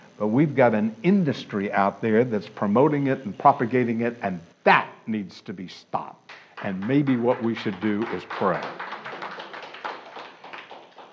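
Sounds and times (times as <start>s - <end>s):
speech: 0.2s - 8.9s
audience applause: 6.6s - 11.1s.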